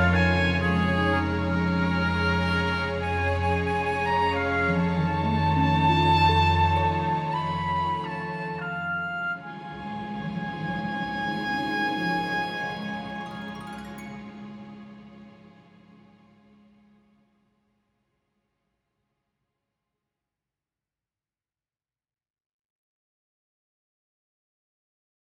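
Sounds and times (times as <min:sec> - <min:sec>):
soprano saxophone: 0:00.0 - 0:14.8.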